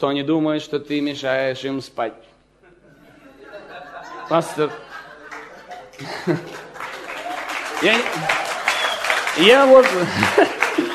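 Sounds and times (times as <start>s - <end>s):
speech: 0.0s - 2.3s, 4.3s - 4.9s, 6.0s - 6.6s, 7.8s - 8.4s, 9.4s - 10.9s
laughter: 2.6s - 10.9s
audience applause: 5.1s - 10.9s.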